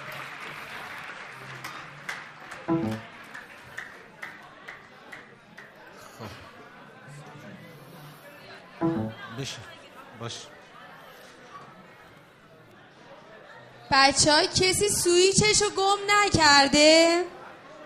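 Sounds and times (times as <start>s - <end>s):
crowd clapping: 0.0s - 5.8s
faint murmur of voices: 0.0s - 17.8s
speech: 2.7s - 3.1s, 9.4s - 10.5s, 13.9s - 17.4s.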